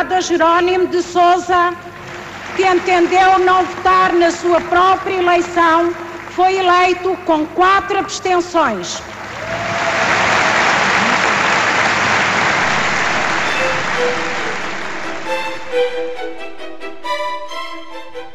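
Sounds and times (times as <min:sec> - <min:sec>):
speech: 0:00.0 - 0:09.6
party congress delegates giving standing ovation: 0:01.8 - 0:07.1, 0:09.0 - 0:16.2.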